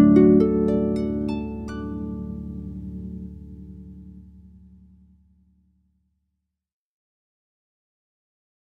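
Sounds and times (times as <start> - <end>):
solo harp canon: 0.0 - 4.6.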